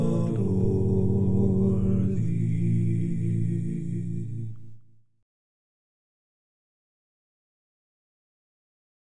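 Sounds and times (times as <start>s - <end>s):
a cappella hymn: 0.0s - 5.0s.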